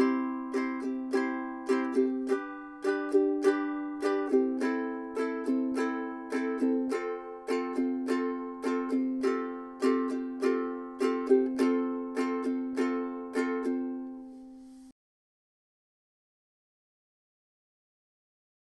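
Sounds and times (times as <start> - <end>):
Kala soprano ukulele playing: 0.0 - 14.9.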